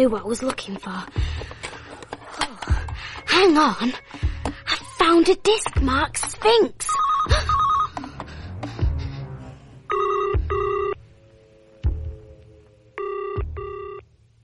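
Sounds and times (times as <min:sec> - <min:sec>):
speech: 0:00.0 - 0:01.8, 0:03.4 - 0:04.3, 0:05.1 - 0:07.5
telephone ringing: 0:06.9 - 0:08.0, 0:09.9 - 0:11.0, 0:13.0 - 0:14.0.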